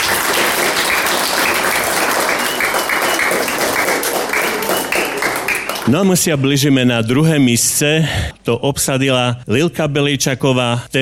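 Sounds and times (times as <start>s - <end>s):
big applause: 0.0s - 6.2s
speech: 5.9s - 11.0s.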